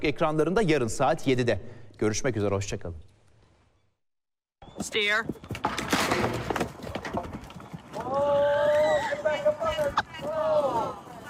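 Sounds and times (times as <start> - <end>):
speech: 0.0 - 3.1, 4.8 - 6.5, 8.1 - 11.0
horse hooves clip-clopping: 4.6 - 11.2.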